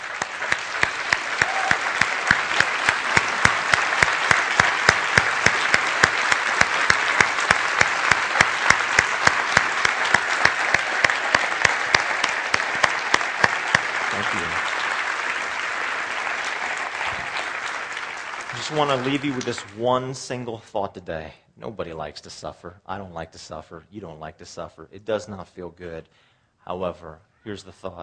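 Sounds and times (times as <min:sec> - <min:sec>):
audience round of applause: 0:00.0 - 0:20.2
speech: 0:18.8 - 0:28.0.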